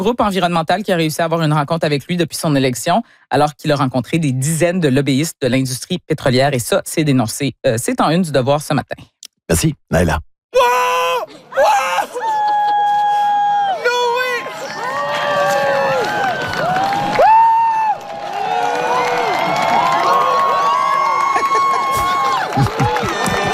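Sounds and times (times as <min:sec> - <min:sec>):
speech: 0:00.0 - 0:12.3
laughter: 0:11.3 - 0:13.3, 0:21.1 - 0:23.5
crowd cheering and applauding during solar eclipse: 0:12.2 - 0:23.5.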